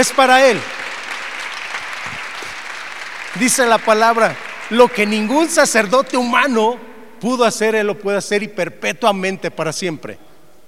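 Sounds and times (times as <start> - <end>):
speech: 0.0 - 0.8, 3.4 - 10.2
audience applause: 0.0 - 5.8.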